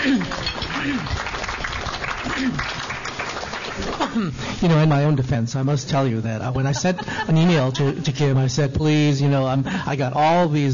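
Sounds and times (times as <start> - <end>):
round of applause: 0.0 - 4.2
speech: 0.8 - 1.2, 2.3 - 2.8, 3.8 - 10.7
laughter: 6.0 - 8.4.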